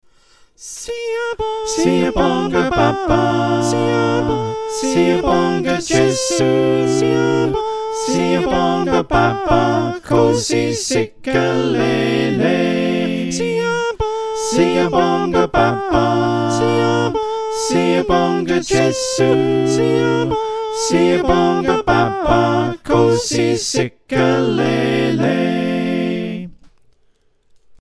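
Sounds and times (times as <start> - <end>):
SATB four-part choir singing: 0.6 - 26.6.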